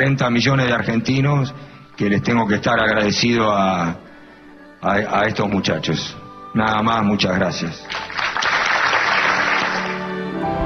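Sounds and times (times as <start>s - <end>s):
speech: 0.0s - 4.1s, 4.8s - 8.4s
audience applause: 7.9s - 10.2s.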